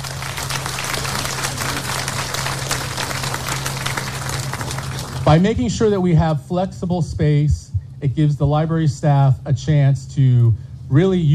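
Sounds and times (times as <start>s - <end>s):
audience applause: 0.0s - 5.5s
speech: 5.3s - 11.3s.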